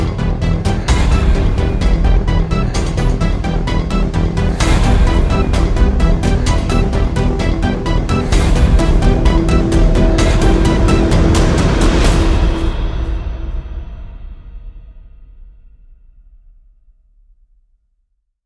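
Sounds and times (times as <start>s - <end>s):
synth: 0.0s - 14.0s
drums: 0.0s - 16.2s.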